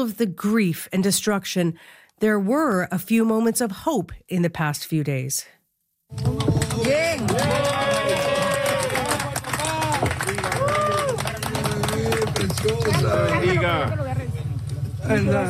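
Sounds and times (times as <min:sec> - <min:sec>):
speech: 0:00.0 - 0:07.6, 0:15.1 - 0:15.4
applause as rescuers pull baby from debris: 0:06.1 - 0:13.9.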